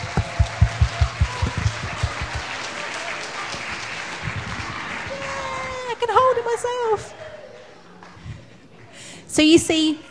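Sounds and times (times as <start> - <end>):
audience applause: 0.0 - 6.4
speech: 6.6 - 7.2, 9.4 - 10.1.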